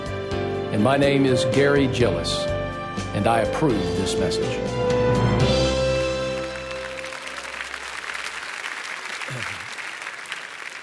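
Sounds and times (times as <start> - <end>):
speech: 0.8 - 2.5, 3.2 - 5.5
audience clapping: 6.1 - 10.8.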